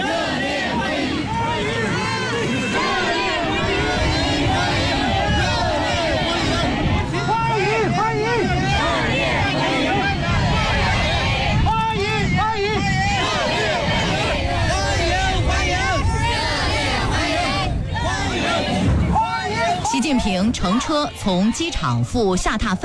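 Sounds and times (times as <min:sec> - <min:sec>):
crowd of overseas Chinese and students chanting and shouting for Xi Jinping: 0:00.0 - 0:22.8
speech: 0:20.6 - 0:22.8.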